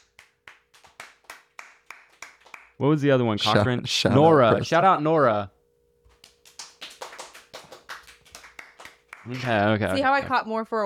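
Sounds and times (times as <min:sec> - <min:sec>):
round of applause: 0:00.0 - 0:02.8, 0:06.1 - 0:10.0
speech: 0:02.8 - 0:05.6, 0:09.3 - 0:10.8.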